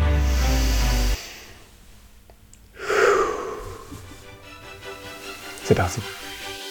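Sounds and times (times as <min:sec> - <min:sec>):
deep breath in: 0:00.2 - 0:01.8, 0:02.7 - 0:04.2
speech: 0:05.7 - 0:06.2.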